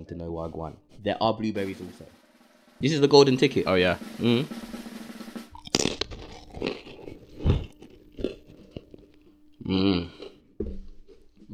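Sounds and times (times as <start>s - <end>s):
speech: 0.0s - 2.2s, 2.8s - 4.7s
person humming: 4.2s - 4.6s, 9.6s - 10.4s
crunchy chewing while eating: 5.5s - 11.5s.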